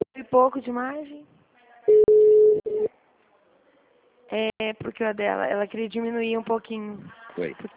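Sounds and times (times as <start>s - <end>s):
speech: 0.3s - 2.0s, 4.3s - 7.7s
telephone line tone after a dropped call: 1.9s - 2.9s.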